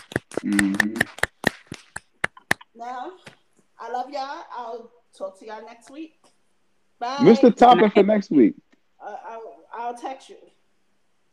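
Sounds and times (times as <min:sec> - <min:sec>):
people clapping hands: 0:00.0 - 0:02.6
speech: 0:00.4 - 0:01.2, 0:04.2 - 0:06.3, 0:07.0 - 0:09.2, 0:09.8 - 0:10.6.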